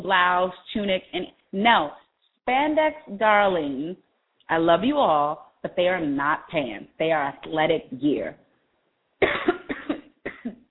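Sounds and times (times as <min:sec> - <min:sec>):
speech: 0:00.0 - 0:08.4
person coughing from choking: 0:09.2 - 0:10.6.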